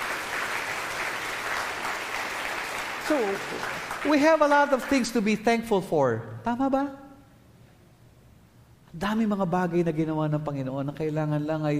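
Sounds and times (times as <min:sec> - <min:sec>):
audience applauding loudly: 0:00.0 - 0:05.3
speech: 0:03.1 - 0:07.0, 0:09.0 - 0:11.7.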